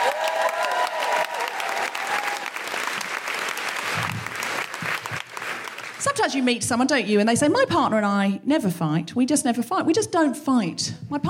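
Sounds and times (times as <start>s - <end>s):
audience applause in Brighton welcoming a host: 0.0s - 6.4s
speech: 6.2s - 11.2s.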